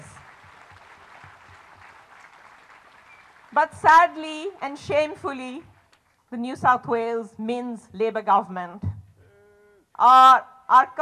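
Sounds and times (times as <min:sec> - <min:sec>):
audience applause: 0:00.0 - 0:04.6
speech: 0:03.5 - 0:05.7, 0:06.3 - 0:08.9, 0:10.0 - 0:10.9.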